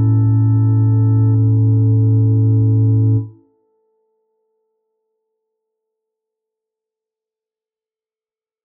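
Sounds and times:
ambient music for a funeral home: 0.0s - 3.4s.

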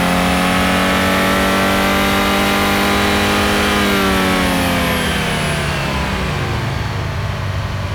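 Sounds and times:
Audi A4 allroad 20TFSI engine revving at different rpm: 0.0s - 7.8s.

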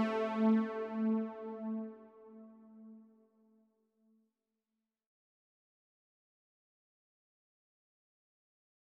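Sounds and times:
Tal noisemaker synthesizer: 0.0s - 2.2s.

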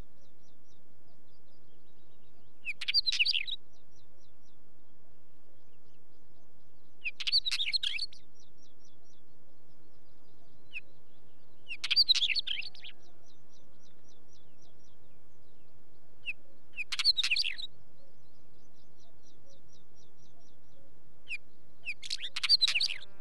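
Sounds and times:
Northern Wheatear singing squeaky whistles and scratchy crackles: 0.0s - 23.1s.

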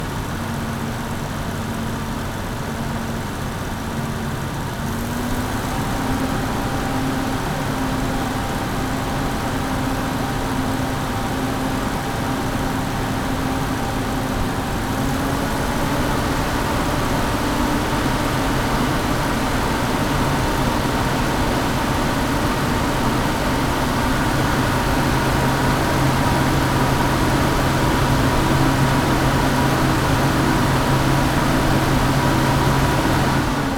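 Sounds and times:
M8 Greyhound armored car engine startup, blips, steady rpms in neutral and shutdown: 0.1s - 33.7s.

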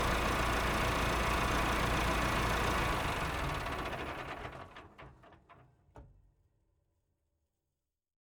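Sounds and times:
Massey-Ferguson 3060E tractor engine idling, revving and shutting down: 0.0s - 4.7s.

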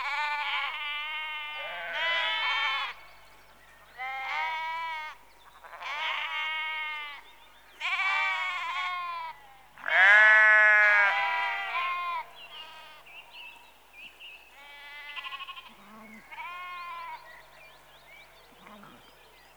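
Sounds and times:
sheep bleating in a rural outdoor setting: 0.0s - 3.0s, 4.0s - 7.2s, 7.8s - 13.0s, 14.6s - 17.2s.

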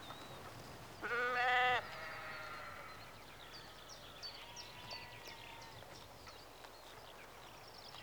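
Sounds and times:
sheep bleating in a rural exterior atmosphere in early evening: 1.0s - 2.9s.

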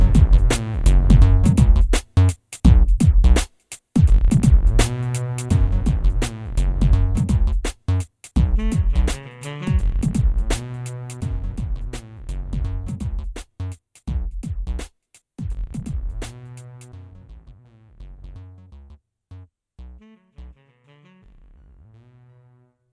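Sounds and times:
messy beat: 0.0s - 16.8s.

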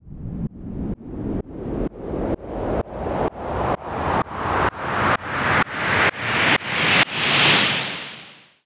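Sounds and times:
short white noise sweep: 0.5s - 8.6s.

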